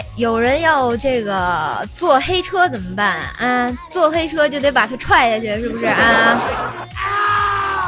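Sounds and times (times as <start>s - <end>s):
speech: 0.2s - 7.2s
laughter: 5.5s - 6.9s
anguished scream sound effect: 6.9s - 7.8s.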